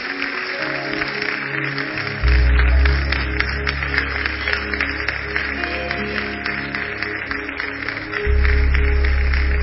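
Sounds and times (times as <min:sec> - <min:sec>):
crowd clapping: 0:00.0 - 0:09.6
low droning hum: 0:02.2 - 0:09.6.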